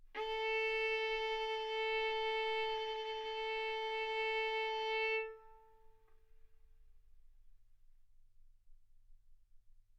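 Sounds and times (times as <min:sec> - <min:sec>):
violin bowed mezzo-forte on the A string, A4 and B4: 0:00.0 - 0:06.1.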